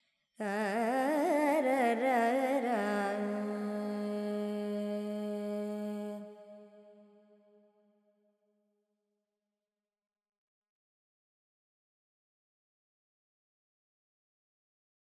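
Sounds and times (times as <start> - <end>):
Carnatic female vocal alap in Lydian mode with effects: 0.4 - 7.0.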